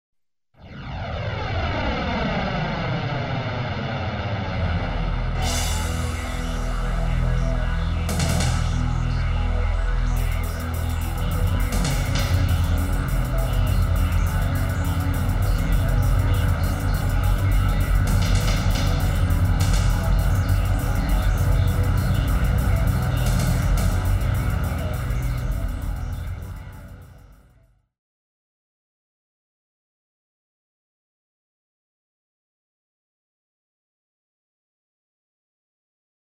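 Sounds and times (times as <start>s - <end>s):
jet aircraft: 0.6s - 27.1s.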